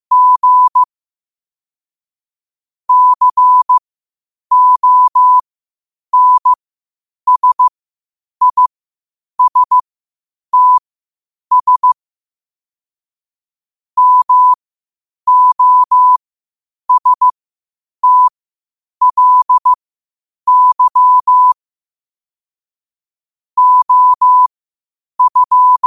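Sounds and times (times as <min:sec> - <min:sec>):
morse code at 5 wpm: 0:00.1 - 0:00.9, 0:02.9 - 0:03.8, 0:04.5 - 0:05.4, 0:06.2 - 0:06.6, 0:07.3 - 0:07.7, 0:08.4 - 0:08.7, 0:09.4 - 0:09.8, 0:10.6 - 0:10.8, 0:11.5 - 0:12.0, 0:14.0 - 0:14.6, 0:15.3 - 0:16.2, 0:16.9 - 0:17.3, 0:18.0 - 0:18.3, 0:19.0 - 0:19.8, 0:20.5 - 0:21.6, 0:23.6 - 0:24.5, 0:25.2 - 0:25.8.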